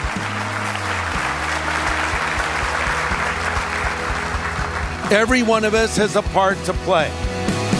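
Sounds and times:
audience applause: 0.0s - 6.2s
speech: 5.1s - 7.6s.

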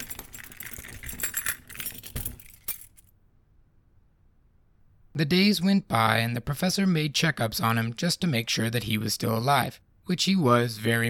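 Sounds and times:
metal keys jangling: 0.0s - 3.1s
speech: 5.2s - 11.0s.

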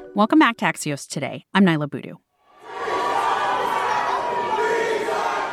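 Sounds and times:
speech: 0.2s - 2.2s
crowd shouting in chaos at an LA city council meeting: 2.5s - 5.5s.

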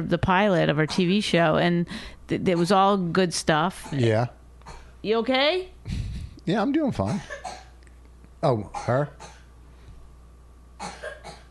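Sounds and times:
speech: 0.0s - 4.4s, 5.0s - 7.6s, 8.4s - 9.3s
quiet room hum: 0.0s - 11.4s
coughing: 3.8s - 5.0s, 7.0s - 7.8s, 8.6s - 9.5s, 10.8s - 11.4s.

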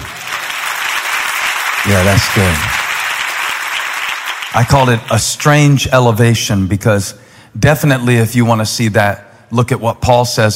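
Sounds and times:
audience clapping: 0.0s - 5.2s
speech: 1.9s - 2.8s, 4.5s - 10.5s.

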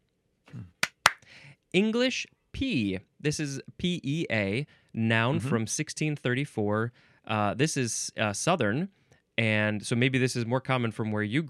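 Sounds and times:
claps: 0.8s - 1.2s
speech: 1.7s - 11.4s.

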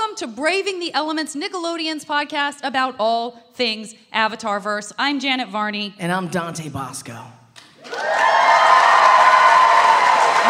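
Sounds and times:
speech: 0.2s - 8.3s
audience cheering and applause: 7.8s - 10.4s.

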